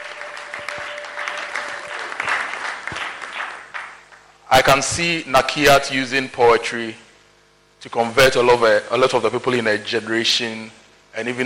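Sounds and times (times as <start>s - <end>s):
round of applause: 0.0s - 4.4s
speech: 4.5s - 7.0s, 7.8s - 11.4s.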